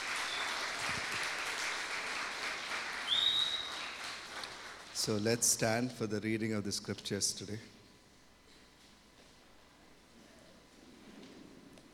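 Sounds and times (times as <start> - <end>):
audience applause: 0.0 - 5.0
speech: 5.0 - 7.8.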